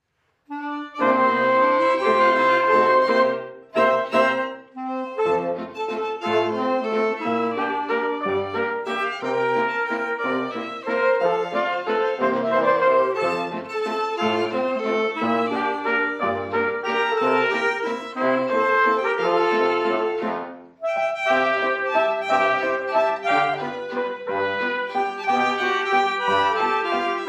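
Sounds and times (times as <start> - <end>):
waltz music: 0.5 - 27.2.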